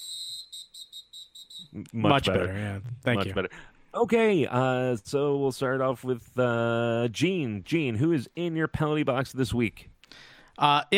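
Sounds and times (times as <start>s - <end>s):
distant shrill whistle: 0.0s - 1.8s
speech: 1.8s - 10.9s.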